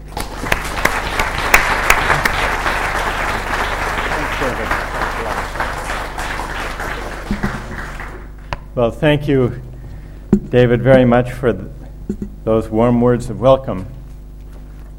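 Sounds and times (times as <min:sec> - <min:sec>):
audience applauding a distinguished visitor coming to the podium: 0:00.0 - 0:08.6
speech: 0:08.8 - 0:09.7, 0:10.3 - 0:14.0.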